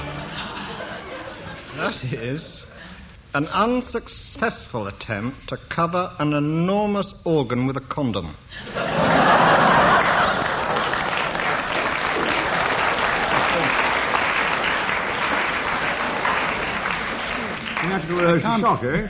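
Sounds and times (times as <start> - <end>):
scattered laughter: 0.2 - 2.0, 8.6 - 11.3, 18.3 - 19.0
speech: 2.0 - 9.1, 18.1 - 19.0
crowd clapping: 9.2 - 18.9.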